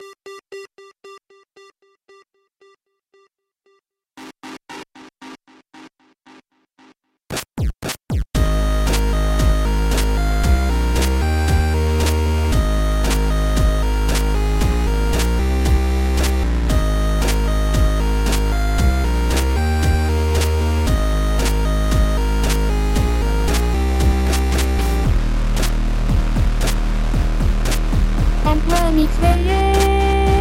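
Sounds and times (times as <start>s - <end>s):
FM8 and chipsounds synth: 8.4s - 30.4s
vocaloid synthesized vocals: 28.4s - 30.4s.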